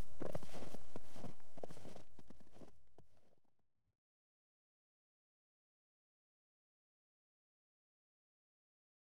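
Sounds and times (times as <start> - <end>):
crowd of children's footsteps in snow: 0.0 - 3.3.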